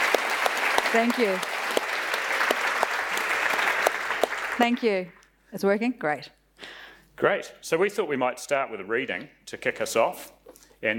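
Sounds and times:
audience applauding to welcome an author at a book reading: 0:00.0 - 0:04.9
speech: 0:00.9 - 0:01.6, 0:04.6 - 0:06.4, 0:07.2 - 0:10.9.

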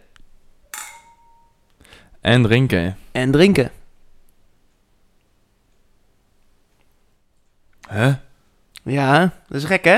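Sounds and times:
glasses clinking in a toast: 0:00.7 - 0:01.6
speech: 0:02.2 - 0:03.8, 0:08.0 - 0:08.2, 0:08.8 - 0:09.9.

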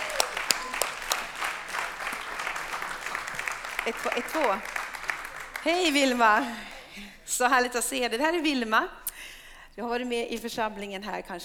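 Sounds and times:
audience applauding: 0:00.0 - 0:07.0
speech: 0:03.9 - 0:04.8, 0:05.6 - 0:09.0, 0:09.8 - 0:11.4.

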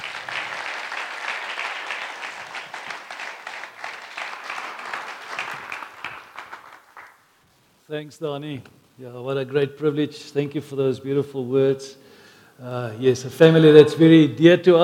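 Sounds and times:
church congregation applauding to welcome guest speakers at a Sunday service: 0:00.0 - 0:07.3
speech: 0:07.9 - 0:12.0, 0:12.6 - 0:14.8.

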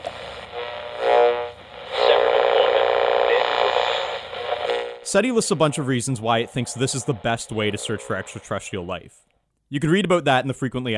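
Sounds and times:
radio static with whistling tones as a dial sweeps between stations: 0:00.0 - 0:08.9
speech: 0:05.1 - 0:10.9.

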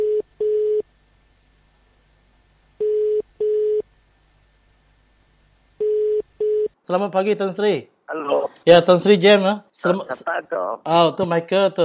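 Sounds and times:
telephone ringing tone: 0:00.0 - 0:00.8, 0:02.8 - 0:03.8, 0:05.8 - 0:06.8
speech: 0:06.9 - 0:07.9, 0:08.6 - 0:11.8.

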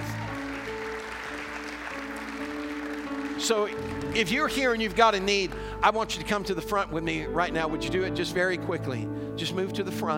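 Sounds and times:
audience hand clap applause: 0:00.0 - 0:05.7
speech: 0:03.4 - 0:10.1.

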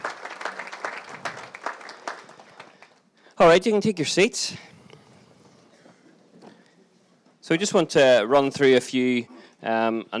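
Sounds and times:
audience applause: 0:00.0 - 0:03.1
speech: 0:03.4 - 0:04.7, 0:07.5 - 0:10.1.

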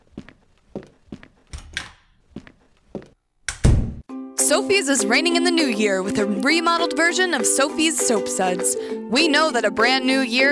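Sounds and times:
footsteps of someone leaving: 0:00.0 - 0:03.2
speech: 0:04.5 - 0:10.5.

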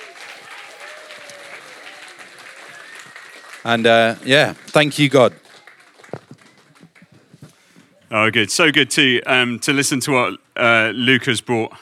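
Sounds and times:
crowd applauding: 0:00.0 - 0:07.3
faint voices and cheers: 0:00.0 - 0:07.3
speech: 0:03.6 - 0:05.4, 0:08.2 - 0:11.8.

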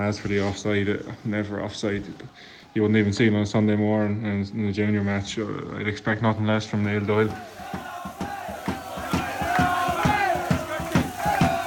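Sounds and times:
speech: 0:00.0 - 0:07.9
crowd of supporters shouting: 0:07.0 - 0:11.6.

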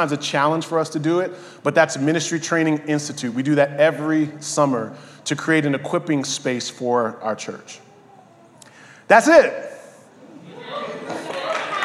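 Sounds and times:
speech: 0:00.0 - 0:07.9, 0:09.1 - 0:09.7
laughter: 0:10.2 - 0:11.8
crowd clapping: 0:10.9 - 0:11.8.

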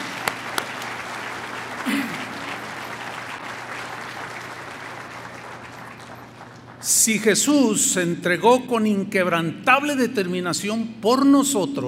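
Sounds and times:
audience applause: 0:00.0 - 0:07.3
speech: 0:07.0 - 0:11.8.

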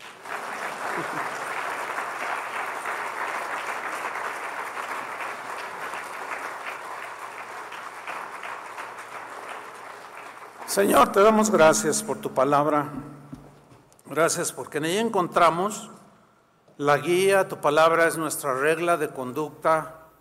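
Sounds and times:
audience applause: 0:00.0 - 0:12.1
speech: 0:10.8 - 0:13.2, 0:14.1 - 0:16.0, 0:16.8 - 0:20.0.

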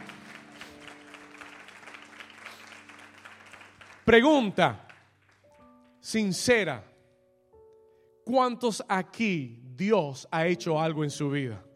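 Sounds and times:
audience applauding: 0:00.0 - 0:05.5
speech: 0:04.1 - 0:04.9, 0:06.1 - 0:06.9, 0:08.3 - 0:11.7.

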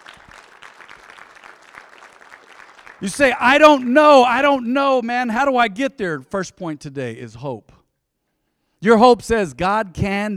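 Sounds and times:
audience applause: 0:00.0 - 0:03.6
speech: 0:03.0 - 0:07.8, 0:08.8 - 0:10.3.

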